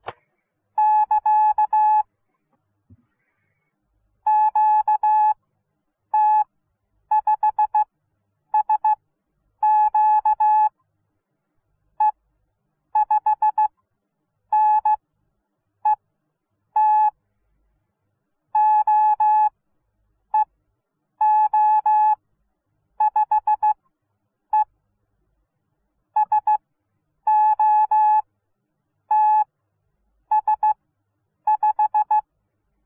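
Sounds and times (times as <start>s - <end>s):
high-speed Morse code beeps: 0.8s - 2.0s, 4.3s - 5.4s, 6.2s - 6.4s, 7.1s - 7.8s, 8.6s - 9.0s, 9.6s - 10.7s, 13.0s - 13.7s, 14.6s - 15.0s, 16.8s - 17.2s, 18.6s - 19.5s, 21.2s - 22.2s, 23.0s - 23.8s, 26.2s - 26.6s, 27.3s - 28.2s, 29.1s - 29.5s, 30.3s - 30.8s, 31.5s - 32.2s.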